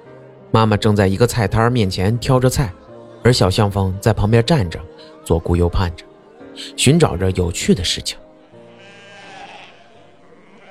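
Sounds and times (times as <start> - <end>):
speech: 0.5 - 8.2
sheep bleating: 8.6 - 10.6.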